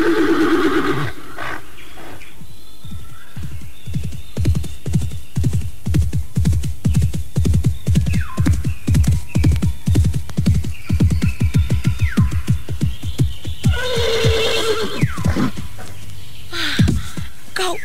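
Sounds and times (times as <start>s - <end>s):
horse neighing: 0.0s - 1.6s, 13.7s - 15.5s
horse hooves clip-clopping: 0.0s - 17.6s.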